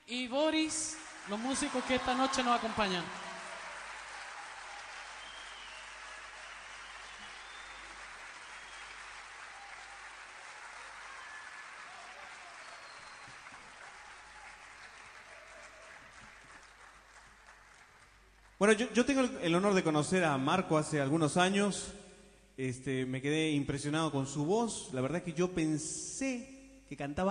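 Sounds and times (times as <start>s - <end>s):
speech: 0.1s - 3.3s, 18.6s - 22.0s, 22.6s - 27.3s
audience applause for the musicians: 0.9s - 18.6s.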